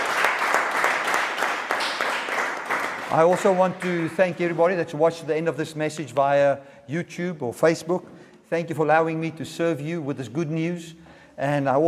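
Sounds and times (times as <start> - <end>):
audience clapping hands: 0.0 - 4.6
speech: 3.1 - 11.8.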